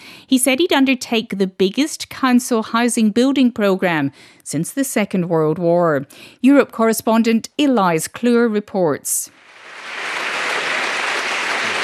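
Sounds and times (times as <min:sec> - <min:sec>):
speech: 0:00.3 - 0:09.4
friendly home crowd in Manchester applauding Andy Burnham at a political address: 0:09.4 - 0:11.8.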